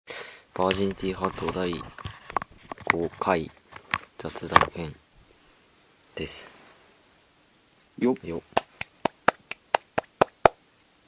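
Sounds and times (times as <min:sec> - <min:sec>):
speech: 0:00.6 - 0:02.1, 0:02.9 - 0:03.6, 0:04.2 - 0:05.0, 0:06.2 - 0:06.6, 0:08.0 - 0:08.6
hand clapping: 0:08.5 - 0:10.6.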